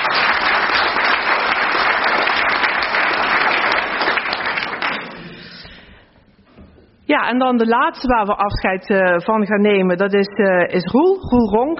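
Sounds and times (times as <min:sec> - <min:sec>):
audience applause: 0:00.0 - 0:05.8
speech: 0:07.2 - 0:11.7.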